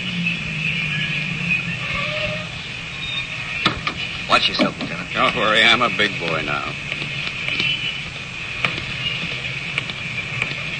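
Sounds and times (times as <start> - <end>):
car engine running: 0.0 - 10.7
speech: 4.4 - 6.8.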